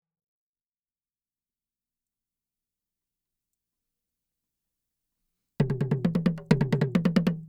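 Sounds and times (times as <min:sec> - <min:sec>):
Asian toy djembe and toms: 0:05.6 - 0:07.4.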